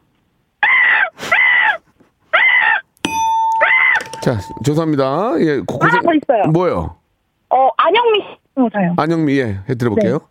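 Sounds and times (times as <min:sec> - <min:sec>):
woman imitating crow caws: 0:00.6 - 0:01.8, 0:02.4 - 0:02.8
bright metallic ding: 0:03.0 - 0:05.2
speech: 0:04.2 - 0:07.0, 0:08.6 - 0:10.2.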